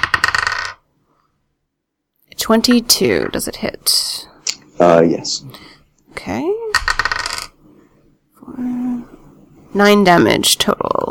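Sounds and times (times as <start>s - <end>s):
dice clattering across a hard surface: 0.0s - 0.8s, 6.7s - 7.6s
speech: 2.4s - 6.6s, 9.7s - 11.0s.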